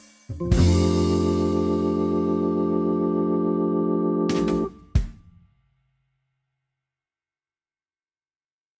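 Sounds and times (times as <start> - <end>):
synth accompaniment: 0.4 - 4.8.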